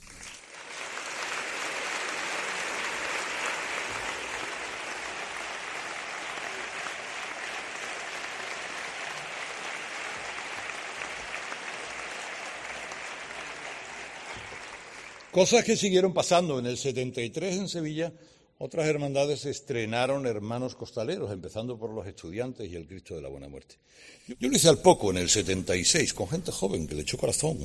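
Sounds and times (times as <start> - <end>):
audience applause: 0.0 - 15.6
speech: 15.4 - 27.6.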